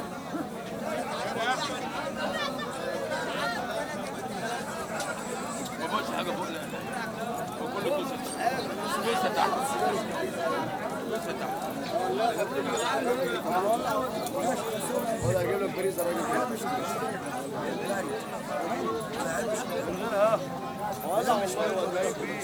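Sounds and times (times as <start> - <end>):
Arab market outdoor ambience with people: 0.0 - 22.4.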